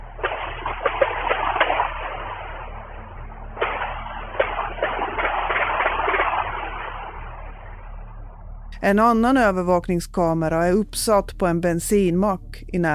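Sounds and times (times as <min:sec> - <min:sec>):
gunfire captured by surveillance camera a few hundred metres away: 0:00.1 - 0:07.8
speech: 0:08.8 - 0:12.9.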